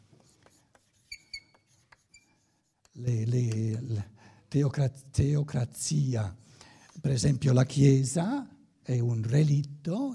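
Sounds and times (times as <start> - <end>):
squeaky marks: 0.0 - 3.0
scratching and tapping of someone writing: 0.0 - 3.9
speech: 3.0 - 6.4, 7.0 - 10.1.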